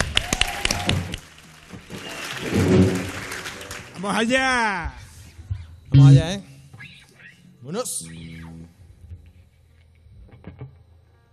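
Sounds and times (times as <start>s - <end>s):
applause for performer: 0.0s - 4.7s
speech: 4.0s - 5.0s, 6.0s - 6.5s, 7.7s - 8.5s.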